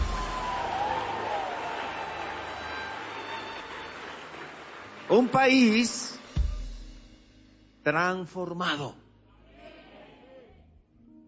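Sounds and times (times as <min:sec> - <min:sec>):
crowd applause: 0:00.0 - 0:06.0
speech: 0:05.1 - 0:06.1, 0:07.9 - 0:09.0.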